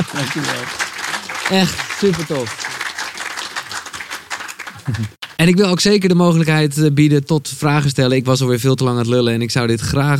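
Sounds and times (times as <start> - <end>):
speech: 0.0 - 0.9, 1.5 - 2.7, 4.8 - 10.1
audience applause: 0.0 - 5.2.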